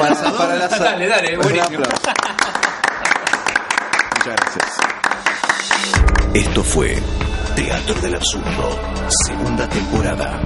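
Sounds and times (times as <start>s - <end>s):
laughter: 0.0s - 3.7s
speech: 0.1s - 2.7s, 4.2s - 5.2s, 5.8s - 10.4s
applause: 1.4s - 6.2s.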